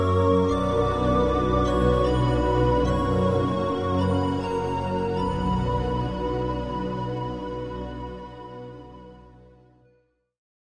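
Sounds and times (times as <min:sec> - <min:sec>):
largo from a flute concerto: 0:00.0 - 0:08.5.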